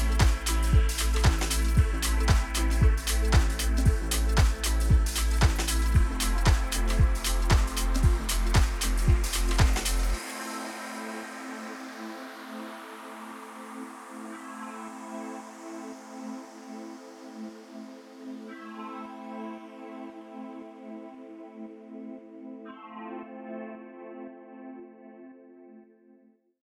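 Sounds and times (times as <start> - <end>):
deep house lounge chill out lofi music: 0.0 - 21.0.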